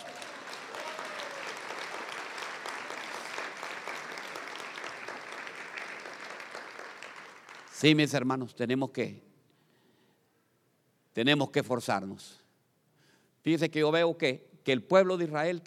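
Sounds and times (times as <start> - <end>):
audience applause: 0.0 - 8.0
speech: 7.8 - 9.3, 11.2 - 12.4, 13.4 - 15.6.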